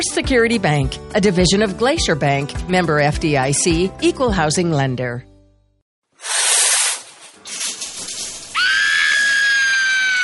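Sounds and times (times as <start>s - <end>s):
speech: 0.0s - 5.3s
shower water spraying: 6.2s - 9.4s.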